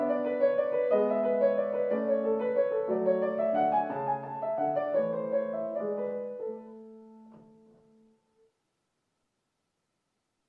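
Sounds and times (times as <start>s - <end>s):
German dance piece in A major on piano: 0.0s - 8.2s.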